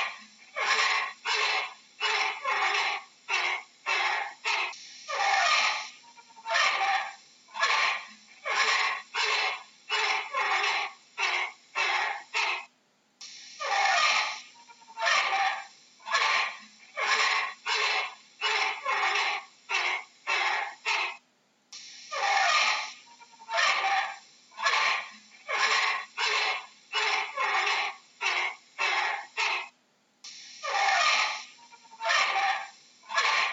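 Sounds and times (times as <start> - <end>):
orangutan call: 0.0 - 12.7, 13.6 - 21.2, 22.1 - 29.8, 30.6 - 33.5.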